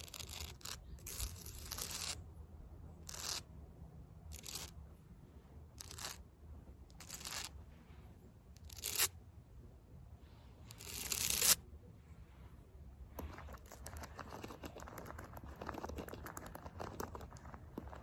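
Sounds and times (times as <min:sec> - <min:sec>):
fake nails scratching concrete: 0:00.0 - 0:02.3, 0:03.0 - 0:03.5, 0:04.3 - 0:04.8, 0:05.7 - 0:06.3, 0:06.9 - 0:07.6, 0:08.5 - 0:09.2, 0:10.6 - 0:11.6, 0:13.1 - 0:18.0
low steady rumble: 0:00.0 - 0:18.0.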